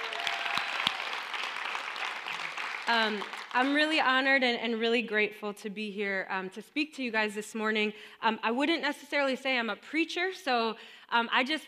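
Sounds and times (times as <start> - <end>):
audience applause welcoming a speaker at a church morning gathering: 0.0 - 3.6
speech: 2.9 - 11.6.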